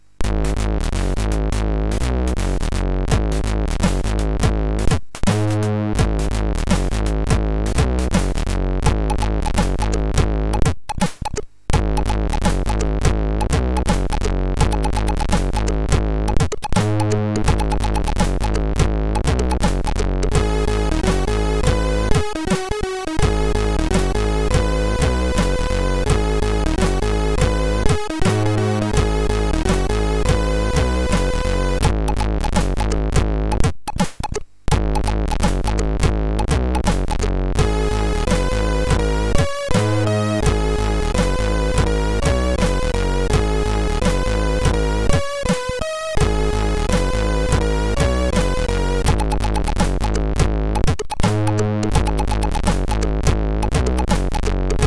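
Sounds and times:
funky chiptune track on a MOS6581R3 SID chip: 0:00.2 - 0:10.8, 0:11.7 - 0:54.8.

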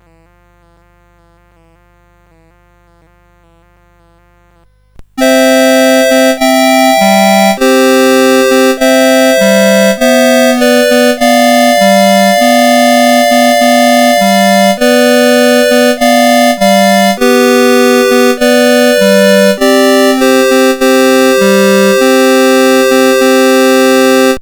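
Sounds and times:
CSG 8580 sound chip: 0:05.2 - 0:24.4.

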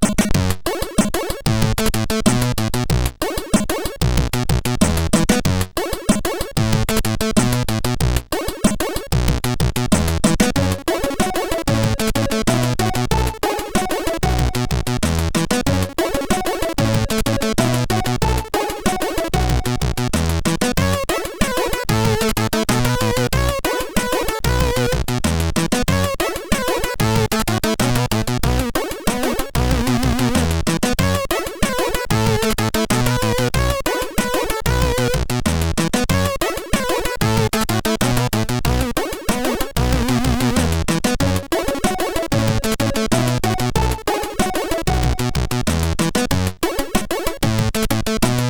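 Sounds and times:
dub music on a MOS6581R3 sound chip: 0:00.2 - 0:48.4.

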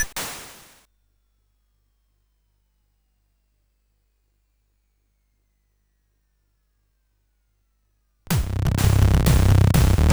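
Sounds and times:
CSG8580 chiptune music: 0:08.3 - 0:10.1.

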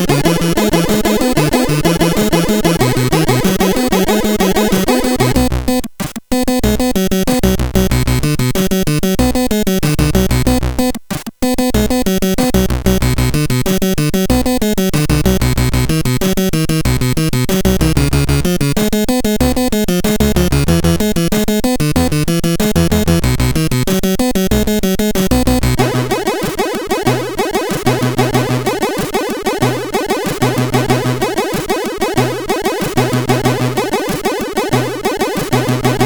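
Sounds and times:
relaxing music on a SID sound chip: 0:00.0 - 0:36.0.

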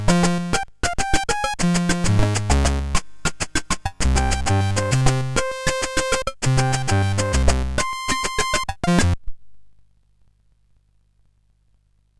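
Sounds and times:
Latin chiptune on MOS6581R4 SID chip: 0:00.0 - 0:09.2.

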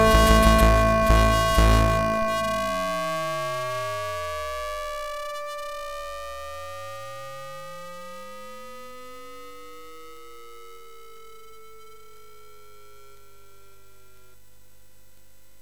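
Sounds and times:
MOS6581R3 sound chip music: 0:00.0 - 0:03.0.

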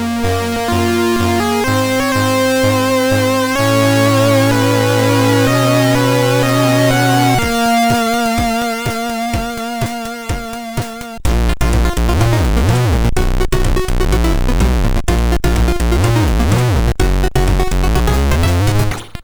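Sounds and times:
MOS6581R3 SID chip music: 0:00.0 - 0:19.2.

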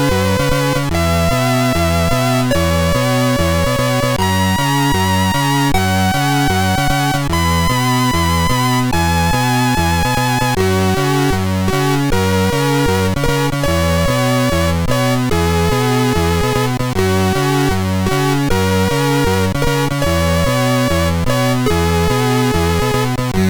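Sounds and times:
chiptune music on a MOS6581R4 sound chip: 0:00.0 - 0:23.3.

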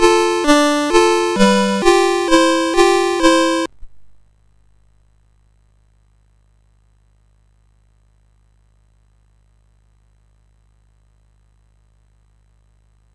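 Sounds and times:
MOS6581R4 SID chip game music: 0:00.0 - 0:04.1.

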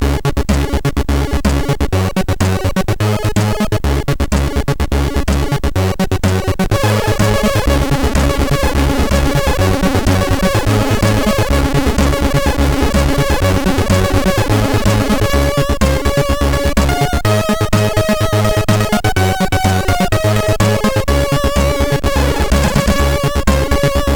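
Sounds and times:
funny SID chip music on a MOS6581R4: 0:00.0 - 0:24.1.

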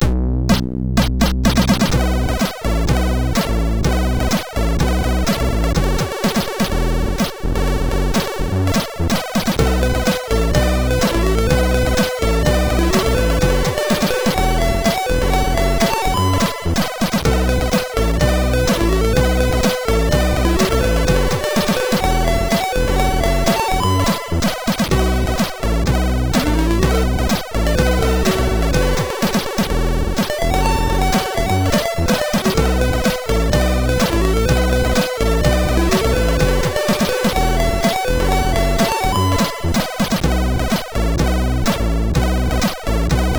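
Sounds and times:
SID MOS6581R4 chiptune: 0:00.5 - 0:43.3.

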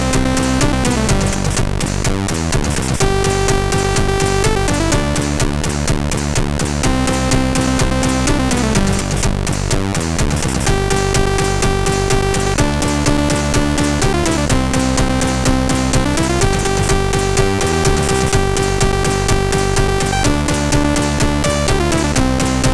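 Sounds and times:
death metal on a MOS6581R4 sound chip: 0:00.0 - 0:22.7.

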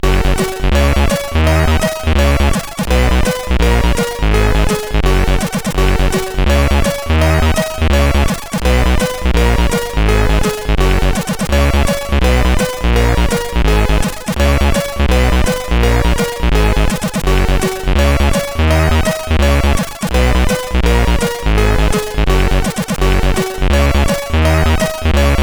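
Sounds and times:
Christmas rock on MOS8580R5 SID chip: 0:00.0 - 0:25.4.

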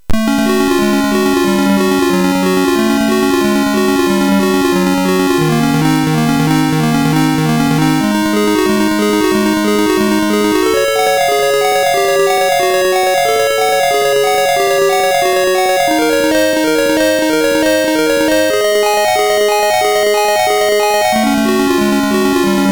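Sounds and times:
music on MOS6581R3 sound chip: 0:00.0 - 0:22.7.

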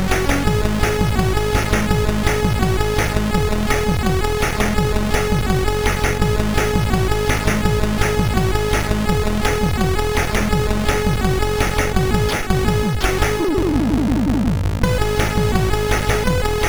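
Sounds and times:
SID MOS6581R3 chip sound: 0:00.1 - 0:13.6, 0:14.9 - 0:16.6.

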